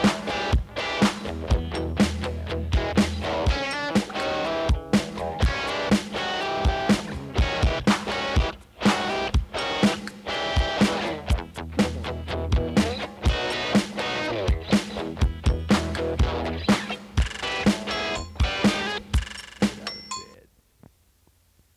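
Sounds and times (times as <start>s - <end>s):
electric guitar blues: 0.0s - 19.9s.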